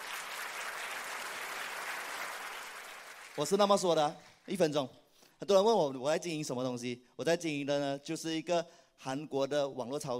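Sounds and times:
audience applause: 0:00.0 - 0:03.8
speech: 0:03.4 - 0:10.1.

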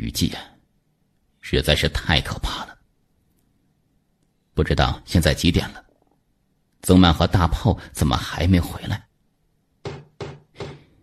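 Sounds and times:
speech: 0:00.1 - 0:00.5, 0:01.4 - 0:02.8, 0:04.6 - 0:05.8, 0:06.8 - 0:09.1
knocking on a door: 0:09.8 - 0:11.0.

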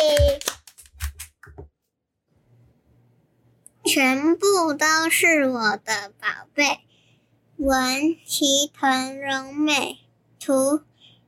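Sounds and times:
hand clapping: 0:00.0 - 0:01.6
speech: 0:03.9 - 0:06.9, 0:07.6 - 0:10.9.

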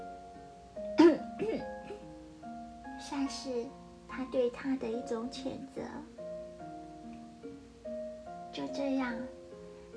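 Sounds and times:
man's dry cough: 0:01.0 - 0:01.7
speech: 0:03.1 - 0:06.2, 0:08.6 - 0:09.4.

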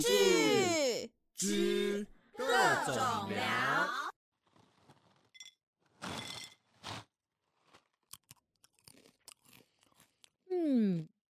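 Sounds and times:
speech: 0:00.0 - 0:00.4, 0:01.4 - 0:02.1, 0:02.7 - 0:04.0
crunching pretzel chips: 0:06.8 - 0:10.4.

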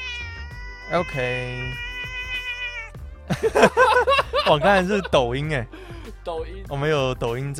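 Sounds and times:
cat meowing: 0:00.0 - 0:03.1
speech: 0:00.9 - 0:01.9, 0:03.3 - 0:07.5
laughter: 0:03.3 - 0:06.0.

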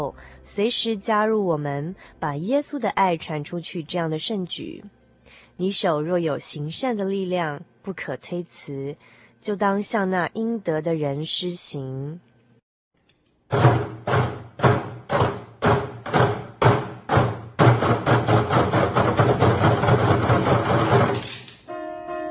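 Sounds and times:
speech: 0:00.0 - 0:05.0, 0:05.6 - 0:12.3, 0:13.5 - 0:13.8
children's percussion ensemble playing at a concert opening: 0:13.5 - 0:21.2.

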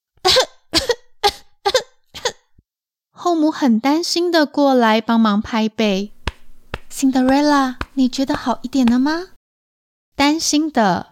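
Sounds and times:
person coughing after choking on rice: 0:00.3 - 0:02.5
speech: 0:03.3 - 0:06.2, 0:07.0 - 0:09.3, 0:10.4 - 0:11.1.

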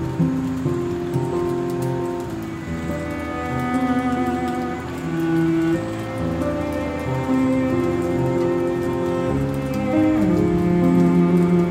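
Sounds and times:
piano music: 0:00.0 - 0:11.7
steady rain falling: 0:00.0 - 0:11.7.

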